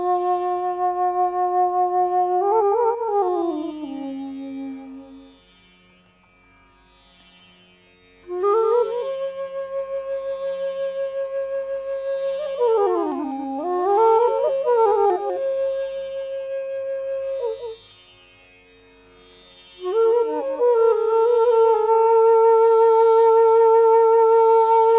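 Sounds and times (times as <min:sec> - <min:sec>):
flute playing Raag Pahari: 0:00.0 - 0:06.4, 0:08.2 - 0:24.9.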